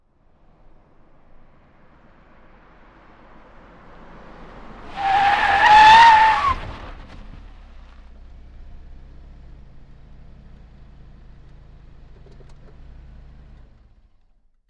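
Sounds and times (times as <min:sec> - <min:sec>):
compact Nissan Sentra skidding: 0:03.2 - 0:08.2.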